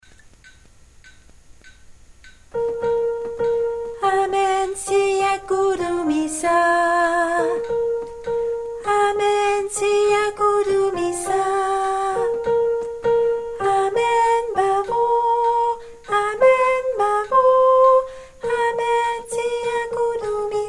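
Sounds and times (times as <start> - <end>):
soprano singing: 2.6 - 20.6.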